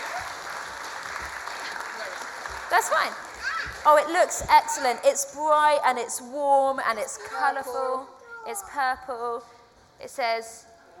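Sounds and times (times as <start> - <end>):
audience applause: 0.0 - 4.0
speech: 2.7 - 10.7.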